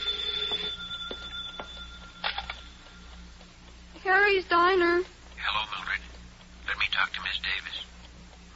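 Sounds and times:
telephone ringing: 0.0 - 3.4
speech: 4.3 - 5.1, 7.0 - 7.9.

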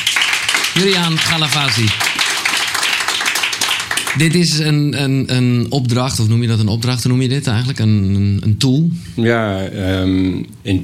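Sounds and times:
audience applause: 0.0 - 4.6
speech: 0.8 - 2.2, 4.2 - 10.8.

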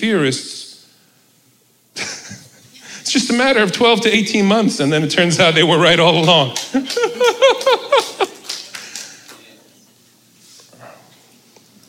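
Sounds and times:
speech: 0.0 - 0.7, 3.1 - 8.1
laughter: 2.0 - 3.0, 6.6 - 9.4
scattered clapping: 5.9 - 9.5.

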